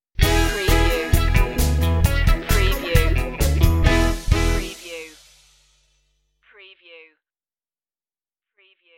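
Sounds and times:
cowboy music stinger: 0:00.2 - 0:04.7.

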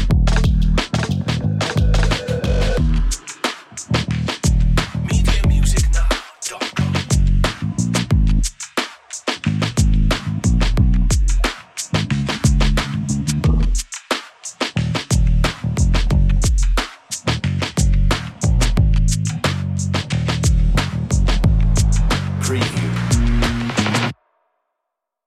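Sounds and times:
enchanting drum and bass music: 0:00.0 - 0:24.1.

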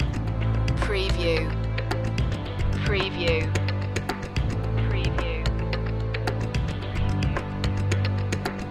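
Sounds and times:
epic intro music loop: 0:00.0 - 0:08.7.

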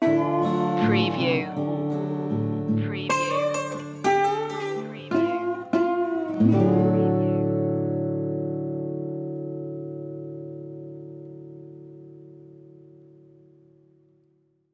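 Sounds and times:
soul blues music: 0:00.0 - 0:13.2.

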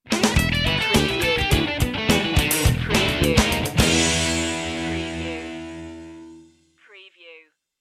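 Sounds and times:
funk rock sting: 0:00.0 - 0:06.4.

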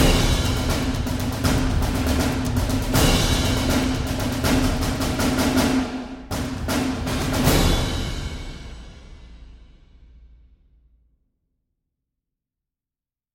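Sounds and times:
percussion mix: 0:00.0 - 0:10.2.

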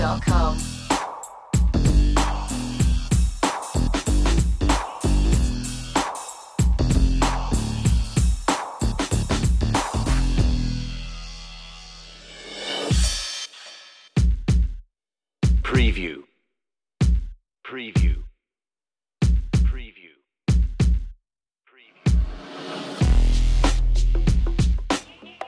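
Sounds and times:
bass: 0:00.0 - 0:12.4, 0:23.0 - 0:24.8
drums: 0:00.0 - 0:14.8, 0:15.4 - 0:16.1, 0:17.0 - 0:17.4, 0:18.0 - 0:18.3, 0:19.2 - 0:19.9, 0:20.5 - 0:21.1, 0:22.1 - 0:25.4.

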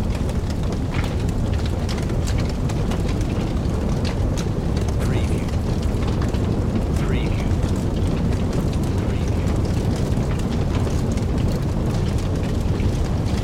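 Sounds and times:
heavy house interior ambience: 0:00.0 - 0:13.4.

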